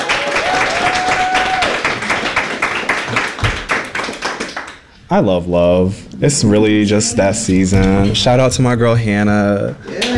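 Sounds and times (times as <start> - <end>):
audience clapping: 0.0 - 4.9, 9.9 - 10.1
speech: 5.1 - 10.1.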